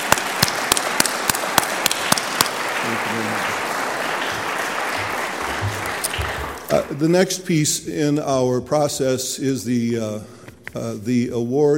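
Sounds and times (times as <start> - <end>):
crowd applauding: 0.0 - 7.0
speech: 3.1 - 3.7, 6.8 - 11.7.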